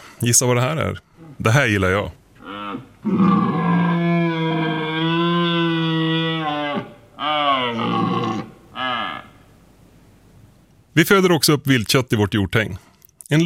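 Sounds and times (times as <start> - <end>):
speech: 0.2 - 3.5, 11.0 - 13.4
red deer stag roaring during the rut: 2.4 - 9.5.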